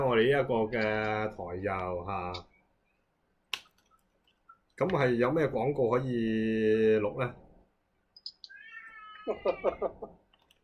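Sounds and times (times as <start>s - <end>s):
speech: 0.2s - 2.5s, 4.8s - 7.4s, 9.3s - 10.2s
cat meowing: 8.4s - 10.1s.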